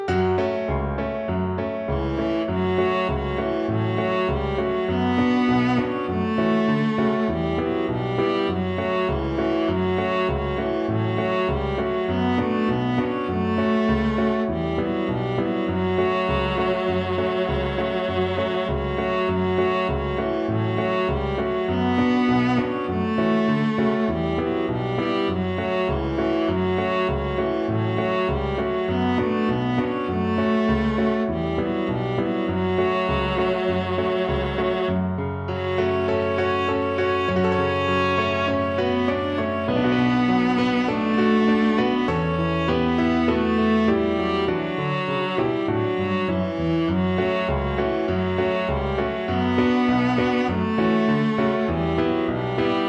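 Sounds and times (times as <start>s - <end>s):
viola: 0.1s - 52.8s.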